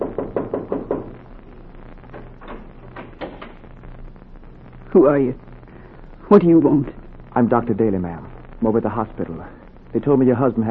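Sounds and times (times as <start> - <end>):
knocking on a door: 0.0 - 1.2
speech: 5.0 - 5.5, 6.3 - 10.6.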